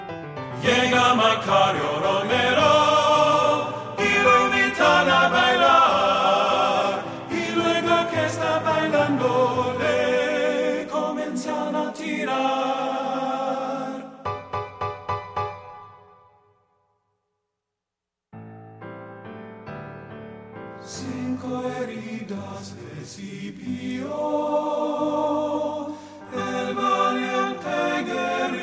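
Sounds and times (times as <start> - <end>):
tenor singing: 0.6 - 14.1, 20.9 - 28.6.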